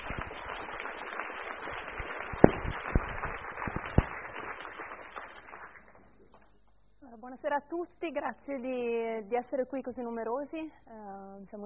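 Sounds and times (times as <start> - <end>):
audience applause: 0.0 - 6.4
speech: 7.4 - 11.6.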